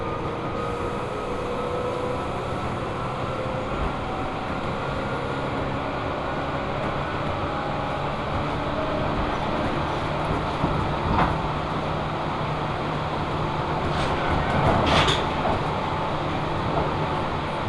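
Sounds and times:
four-car local train rumbling on the single-track Tobu Tojo Line: 0:00.0 - 0:17.6.

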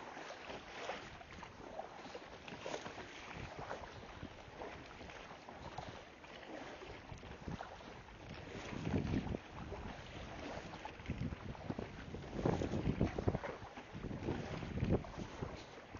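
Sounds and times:
kayak paddle strokes splashing through seawater: 0:00.0 - 0:15.9
wind buffeting the microphone: 0:03.2 - 0:04.4, 0:07.2 - 0:15.9.

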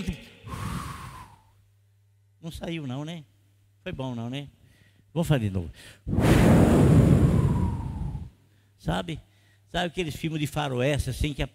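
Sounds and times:
speech: 0:02.4 - 0:04.6, 0:05.2 - 0:07.0, 0:08.8 - 0:11.5
voice imitating a strong rushing wind: 0:06.1 - 0:08.3.

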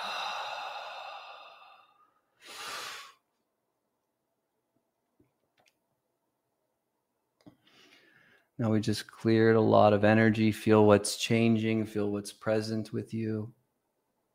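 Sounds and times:
deep exhalation during guided healing breathwork: 0:00.0 - 0:03.2
speech: 0:08.6 - 0:13.6.

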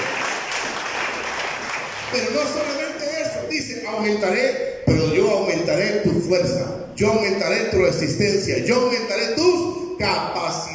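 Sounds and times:
audience applause: 0:00.0 - 0:02.8
speech: 0:02.1 - 0:02.9, 0:03.5 - 0:10.7.

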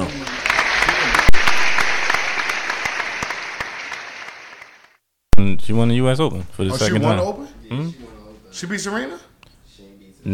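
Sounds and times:
audience applause: 0:00.0 - 0:05.0
speech: 0:05.6 - 0:09.3.

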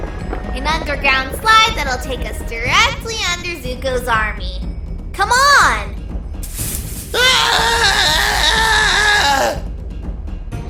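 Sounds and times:
speech: 0:00.7 - 0:05.9
girlish scream: 0:07.1 - 0:09.6.

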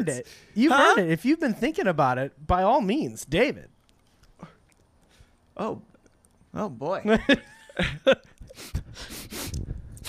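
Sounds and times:
speech: 0:00.0 - 0:03.7, 0:05.6 - 0:05.9, 0:06.5 - 0:09.6
person sniffing with snort-like bursts: 0:08.5 - 0:10.0.

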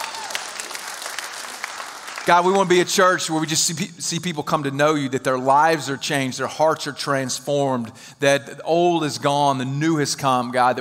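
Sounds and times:
audience clapping: 0:00.0 - 0:03.2
speech: 0:02.3 - 0:10.8.

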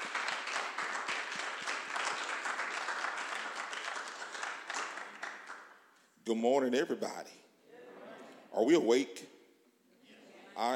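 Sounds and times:
audience hand clapping: 0:00.0 - 0:05.9
speech: 0:06.3 - 0:07.4, 0:08.6 - 0:09.4, 0:10.6 - 0:10.7.

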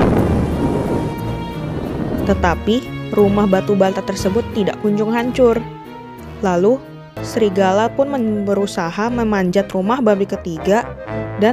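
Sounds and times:
roar of rushing wind: 0:00.0 - 0:03.2
speech: 0:02.3 - 0:05.8, 0:06.4 - 0:11.5.

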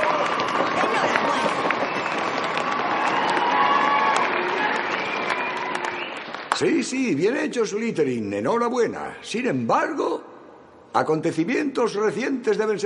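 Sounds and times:
crowd clapping in a school hall in Harry Potter and the Philosopher's Stone: 0:00.0 - 0:07.0
speech: 0:06.6 - 0:10.3, 0:10.9 - 0:12.8.

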